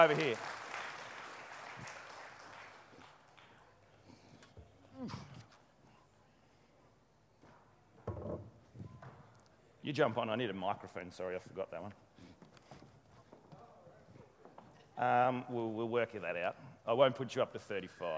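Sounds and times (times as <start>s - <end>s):
speech: 0.0s - 0.6s, 9.8s - 12.0s, 15.0s - 18.1s
audience clapping: 0.0s - 4.1s.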